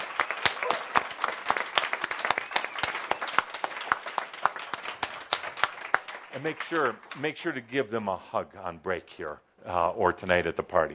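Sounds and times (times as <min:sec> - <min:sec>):
audience applause for the staff: 0:00.0 - 0:07.5
speech: 0:06.4 - 0:10.9.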